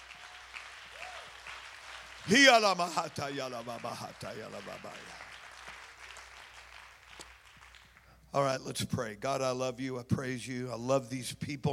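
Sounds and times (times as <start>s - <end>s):
audience clapping hands in praise: 0.0s - 8.2s
speech: 2.3s - 5.3s, 8.4s - 11.7s.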